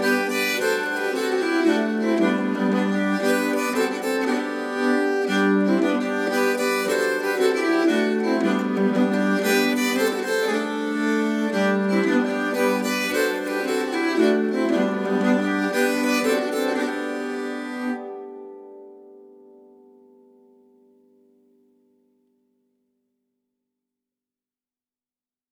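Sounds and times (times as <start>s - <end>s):
nyckelharpa playing a polska: 0.0s - 19.0s.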